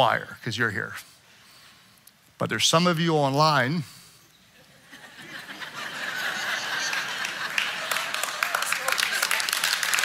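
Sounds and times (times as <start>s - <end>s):
speech: 0.0s - 1.1s, 2.4s - 4.0s
laughter: 4.6s - 10.0s
audience clapping: 6.1s - 10.0s.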